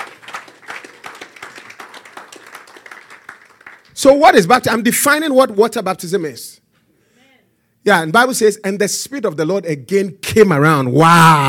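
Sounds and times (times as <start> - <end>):
audience clapping: 0.0 - 4.2
speech: 4.0 - 6.5, 7.9 - 11.4.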